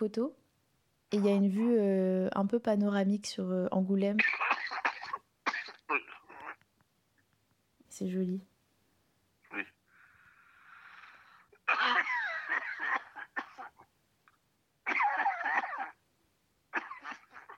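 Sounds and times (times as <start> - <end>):
speech: 0.0 - 0.4, 1.1 - 4.5, 5.9 - 6.1, 7.9 - 8.5, 9.5 - 9.8
heavy coughing: 4.2 - 6.6, 11.6 - 13.9, 14.8 - 16.0, 16.7 - 17.5.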